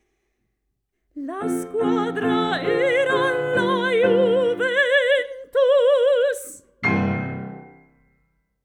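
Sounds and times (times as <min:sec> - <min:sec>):
person singing satirical songs: 0:01.2 - 0:06.7
piano: 0:01.2 - 0:08.3.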